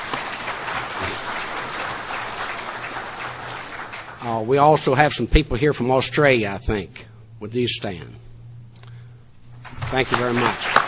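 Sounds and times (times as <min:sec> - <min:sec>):
audience applause: 0:00.0 - 0:04.3, 0:09.9 - 0:10.8
speech: 0:04.2 - 0:08.2, 0:09.9 - 0:10.8.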